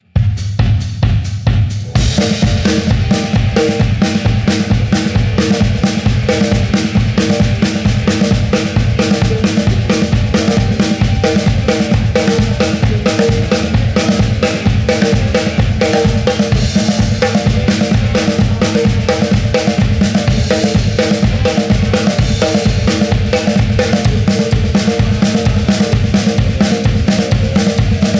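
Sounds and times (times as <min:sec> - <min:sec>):
drums: 0:00.0 - 0:28.1.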